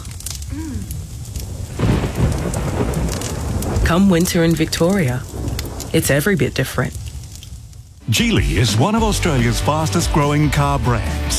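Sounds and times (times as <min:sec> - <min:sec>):
deep roll of thunder: 0:00.0 - 0:10.2
heavy rain pouring: 0:00.0 - 0:11.3
speech: 0:00.6 - 0:01.0, 0:03.9 - 0:05.3, 0:05.9 - 0:07.0, 0:08.1 - 0:11.3.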